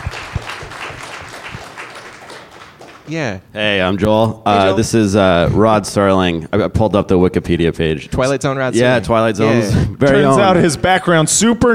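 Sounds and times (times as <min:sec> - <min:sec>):
applause: 0:00.0 - 0:03.1
speech: 0:03.1 - 0:11.7.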